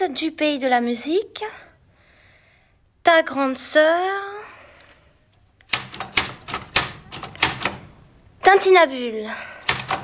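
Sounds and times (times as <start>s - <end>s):
speech: 0.0s - 1.7s, 3.1s - 4.4s, 8.5s - 9.5s
typewriter typing: 5.7s - 8.0s, 9.6s - 10.0s.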